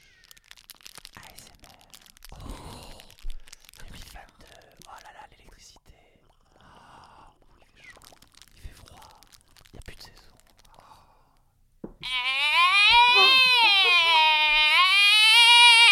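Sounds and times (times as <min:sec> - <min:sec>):
breaths: 0:02.2 - 0:03.8, 0:06.4 - 0:07.7, 0:10.6 - 0:11.6
person imitating a lynx cry: 0:12.0 - 0:15.9.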